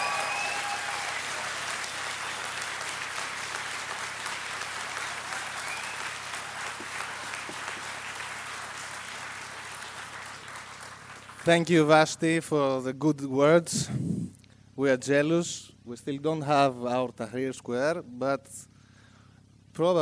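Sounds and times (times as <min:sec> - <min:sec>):
crowd applauding: 0:00.0 - 0:12.4
speech: 0:11.4 - 0:14.1, 0:14.8 - 0:18.7, 0:19.8 - 0:20.0.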